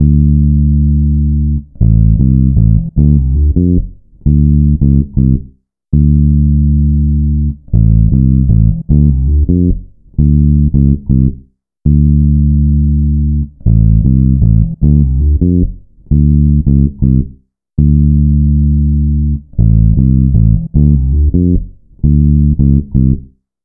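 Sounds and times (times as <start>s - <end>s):
electro lounge bass: 0.0s - 5.4s, 6.0s - 23.2s.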